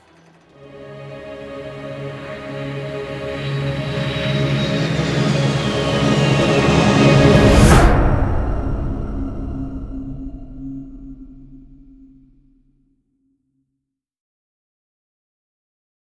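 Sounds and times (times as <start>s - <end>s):
instrumental music: 0.0s - 11.9s.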